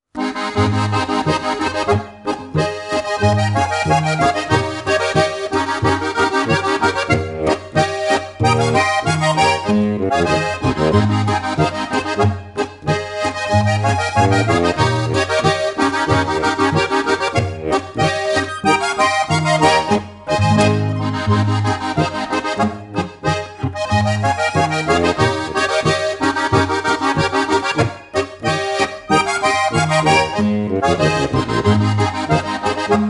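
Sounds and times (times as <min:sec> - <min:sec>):
harmonica: 0:00.2 - 0:33.0.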